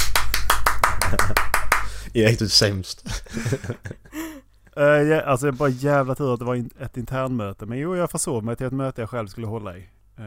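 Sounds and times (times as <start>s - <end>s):
hands clapping: 0.0s - 2.0s
speech: 2.1s - 4.1s, 4.8s - 10.2s
laughter: 3.1s - 4.3s.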